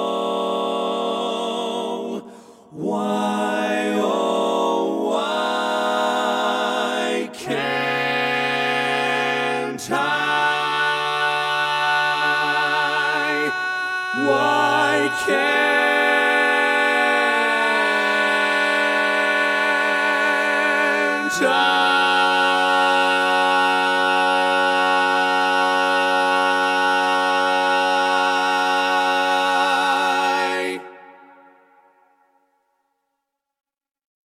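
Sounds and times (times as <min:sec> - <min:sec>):
baritone a cappella singing: 0:00.0 - 0:32.2.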